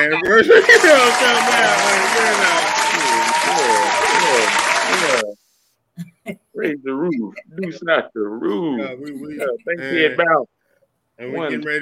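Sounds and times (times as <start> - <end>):
laughter: 0.0 - 5.2
speech: 0.0 - 5.4, 6.0 - 10.6, 11.2 - 11.8
hand clapping: 0.6 - 5.3.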